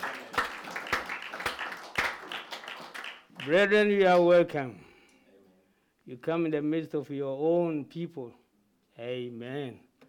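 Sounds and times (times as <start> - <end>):
audience clapping in welcome: 0.0 - 4.4
speech: 3.4 - 4.9, 6.1 - 8.4, 9.0 - 9.9.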